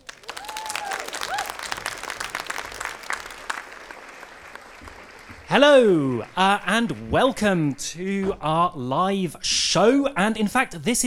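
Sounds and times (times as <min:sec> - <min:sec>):
people whooping: 0:00.0 - 0:07.1
audience applause welcoming the Amelia Project at a live show: 0:00.0 - 0:08.8
speech: 0:05.5 - 0:11.0.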